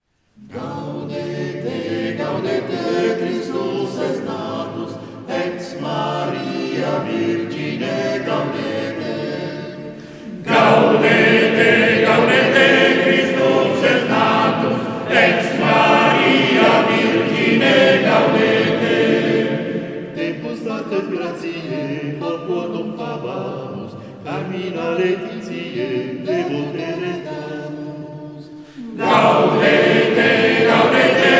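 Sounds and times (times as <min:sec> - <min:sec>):
choir singing: 0:00.3 - 0:31.3.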